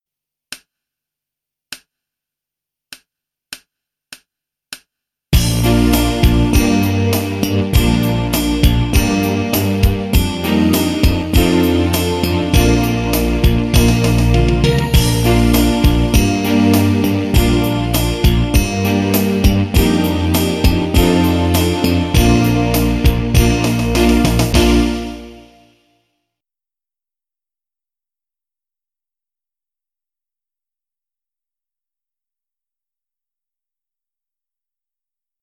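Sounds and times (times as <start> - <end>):
trombone: 5.4 - 25.6
trumpet: 5.4 - 25.9.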